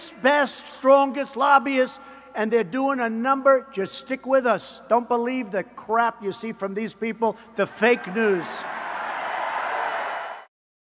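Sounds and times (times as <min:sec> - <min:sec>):
speech: 0:00.2 - 0:08.8
supporters applauding at a VFW rally in Kansas City: 0:08.0 - 0:10.5.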